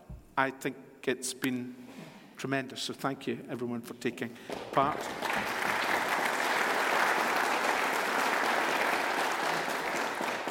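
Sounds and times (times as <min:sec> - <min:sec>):
speech: 0:00.4 - 0:05.7
audience applauding: 0:04.5 - 0:10.4.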